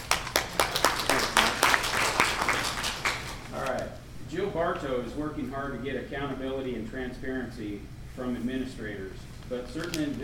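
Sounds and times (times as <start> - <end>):
audience applause honoring a local CSEA union president: 0.0 - 3.5
speech: 4.6 - 10.2.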